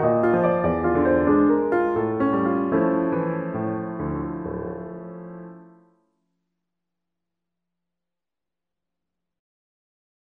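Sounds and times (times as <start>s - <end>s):
fortepiano: 0.0s - 6.0s.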